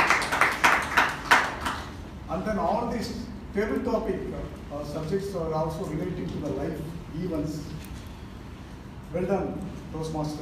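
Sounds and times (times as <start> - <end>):
round of applause: 0.0 - 2.0
speech: 2.4 - 7.8, 9.1 - 10.4.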